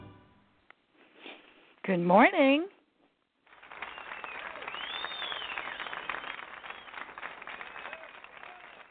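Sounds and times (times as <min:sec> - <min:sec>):
speech: 0:01.9 - 0:02.7
applause: 0:03.4 - 0:08.8.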